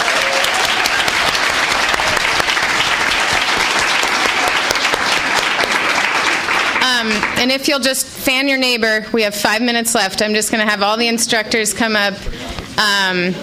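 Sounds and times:
audience clapping: 0:00.0 - 0:07.7
speech: 0:07.4 - 0:13.4.

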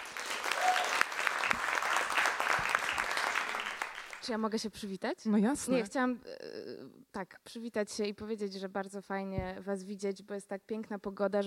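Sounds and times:
audience clapping: 0:00.0 - 0:04.4
speech: 0:04.2 - 0:06.4, 0:07.2 - 0:11.4.

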